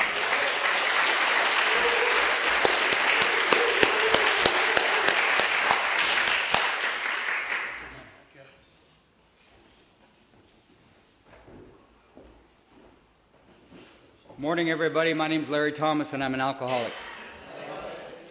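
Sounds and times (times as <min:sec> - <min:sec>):
audience applause for guest speaker: 0:00.0 - 0:08.0
speech: 0:14.4 - 0:17.0.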